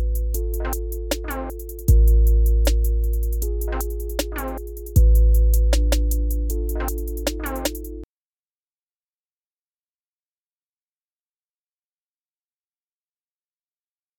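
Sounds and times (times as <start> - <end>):
78 bpm beat for an MC: 0.0 - 8.0.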